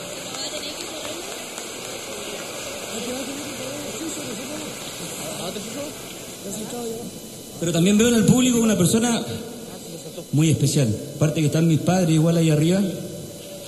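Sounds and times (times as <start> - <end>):
audience applause: 0.0 - 6.3
speech: 5.5 - 9.5, 10.2 - 13.1.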